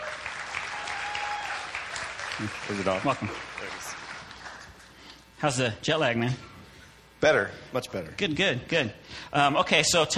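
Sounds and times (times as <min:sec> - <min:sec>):
faint applause welcoming a guest: 0:00.0 - 0:04.7
speech: 0:02.4 - 0:04.0, 0:05.4 - 0:06.5, 0:07.2 - 0:10.1.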